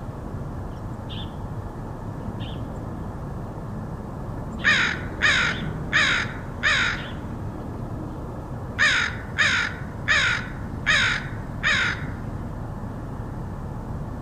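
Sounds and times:
low background hum: 0.0s - 14.1s
crow cawing: 4.6s - 7.2s, 8.8s - 12.2s.

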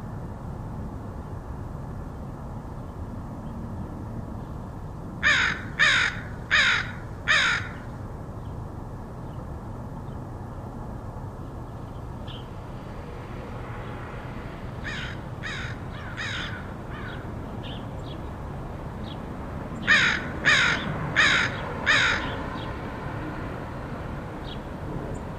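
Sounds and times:
low background hum: 0.0s - 25.3s
crow cawing: 5.2s - 7.9s, 14.8s - 17.3s, 19.8s - 22.4s.

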